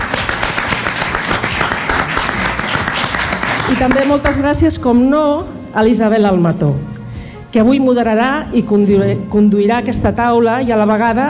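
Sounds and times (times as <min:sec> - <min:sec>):
audience applause: 0:00.0 - 0:04.3
speech: 0:03.8 - 0:06.9, 0:07.5 - 0:11.2.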